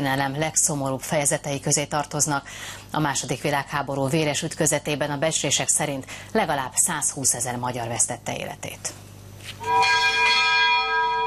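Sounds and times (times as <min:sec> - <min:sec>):
speech: 0:00.0 - 0:10.1
large bell tolling at the Military History Museum: 0:09.6 - 0:11.2.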